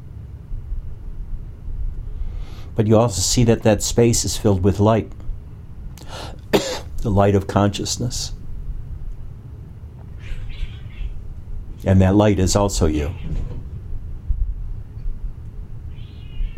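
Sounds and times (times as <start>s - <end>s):
low rumble: 0.0s - 16.5s
speech: 2.7s - 5.2s, 7.0s - 8.4s, 11.8s - 13.6s
two cats fighting and yowling outside the door: 10.1s - 11.2s, 15.9s - 16.5s.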